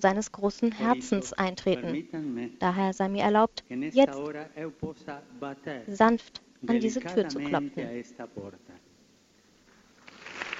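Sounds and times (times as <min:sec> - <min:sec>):
speech: 0:00.0 - 0:08.8
audience applause: 0:10.1 - 0:10.5.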